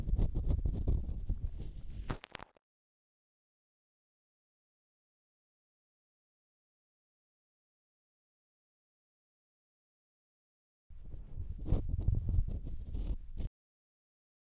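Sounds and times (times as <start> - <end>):
bamboo ear pick at the right ear canal entrance: 0.0 - 2.4, 10.9 - 13.5.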